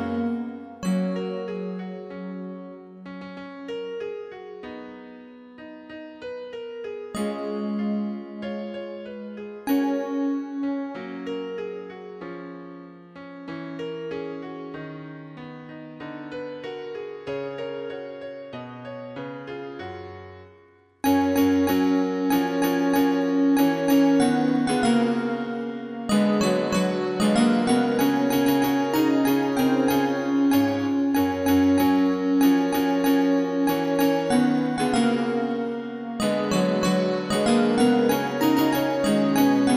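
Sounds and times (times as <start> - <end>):
jingle: 0.0 - 2.5, 7.2 - 11.6, 21.0 - 39.7.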